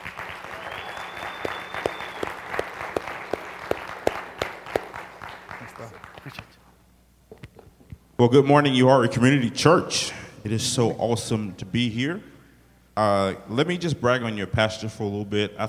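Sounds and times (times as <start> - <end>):
church audience applause welcoming a speaker: 0.0 - 6.6
speech: 8.2 - 12.3, 13.0 - 15.6.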